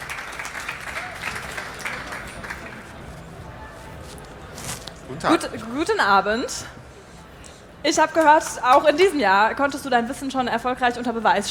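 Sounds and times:
audience applause: 0.0s - 3.2s
speech: 5.1s - 6.8s, 7.8s - 11.5s.

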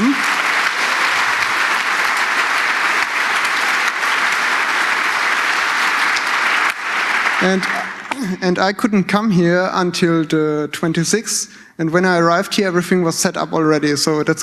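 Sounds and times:
audience applause: 0.0s - 8.8s
speech: 7.4s - 7.8s, 8.4s - 14.4s.

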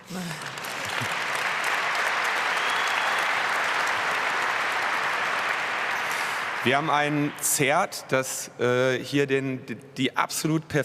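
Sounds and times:
audience applause: 0.0s - 7.9s
speech: 0.1s - 0.5s, 6.6s - 10.8s.

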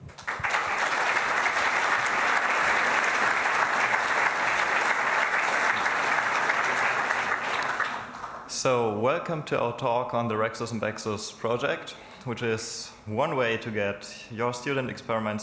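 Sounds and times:
audience applause: 0.0s - 8.5s
speech: 8.6s - 15.4s.

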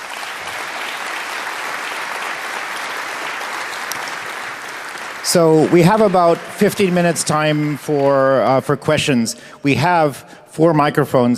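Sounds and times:
applause from a large audience: 0.0s - 8.4s
speech: 5.2s - 11.3s.

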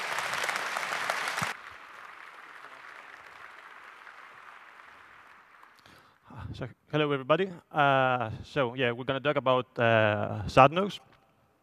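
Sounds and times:
audience applause welcoming a speaker: 0.0s - 6.1s
speech: 6.6s - 11.1s.

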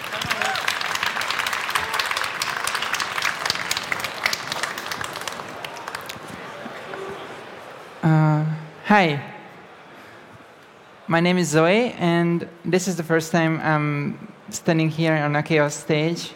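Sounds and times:
large crowd clapping to welcome a speaker at a Chaos event: 0.0s - 7.2s
speech: 8.1s - 9.3s, 11.1s - 16.3s.

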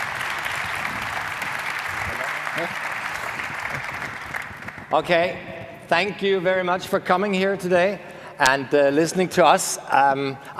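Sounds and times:
audience applause: 0.0s - 5.0s
speech: 2.6s - 2.9s, 4.9s - 10.5s.

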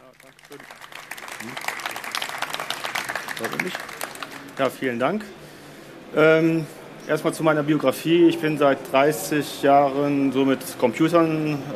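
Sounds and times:
audience applause: 0.0s - 4.8s
speech: 0.3s - 0.8s, 1.4s - 1.7s, 3.4s - 4.0s, 4.6s - 5.4s, 6.1s - 11.7s.

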